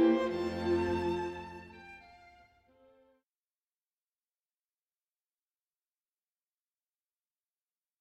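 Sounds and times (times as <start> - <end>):
string ensemble playing a second movement: 0.0 - 2.6.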